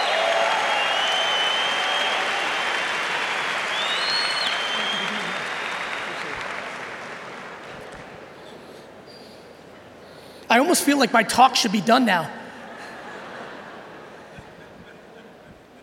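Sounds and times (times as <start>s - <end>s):
standing ovation applause: 0.0s - 8.4s
laughter: 4.8s - 5.5s, 12.5s - 15.8s
speech: 10.6s - 12.4s.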